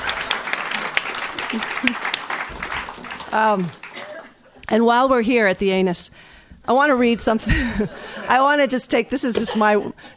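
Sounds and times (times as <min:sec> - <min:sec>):
audience applauding: 0:00.0 - 0:04.4
speech: 0:01.5 - 0:02.6, 0:03.3 - 0:03.8, 0:04.7 - 0:10.1.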